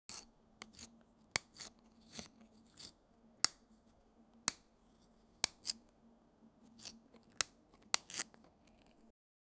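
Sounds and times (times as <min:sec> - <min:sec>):
strawberry being cut slowly and chopped: 0:00.1 - 0:03.7, 0:05.4 - 0:05.8, 0:06.7 - 0:09.1.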